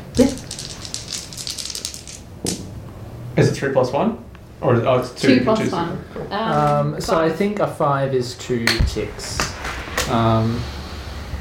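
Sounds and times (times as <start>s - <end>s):
dice rattling: 0.1s - 2.6s
speech: 3.4s - 9.5s, 10.1s - 10.8s.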